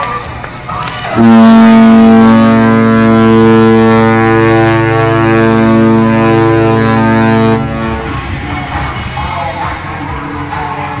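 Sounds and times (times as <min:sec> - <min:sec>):
cruise ship horn: 0:01.1 - 0:08.4.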